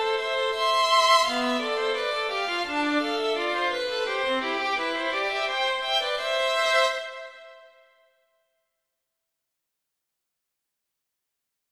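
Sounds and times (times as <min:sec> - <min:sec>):
violin duets: 0:00.0 - 0:07.9.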